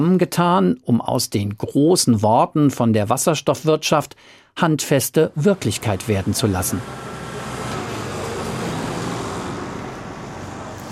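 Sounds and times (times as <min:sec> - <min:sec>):
speech: 0:00.0 - 0:07.2
diesel trucks driving in and out of depot: 0:05.3 - 0:10.9.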